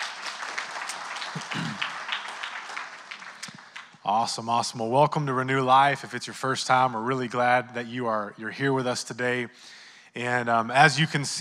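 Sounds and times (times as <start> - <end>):
audience hand clapping: 0.0 - 4.3
speech: 4.1 - 11.3.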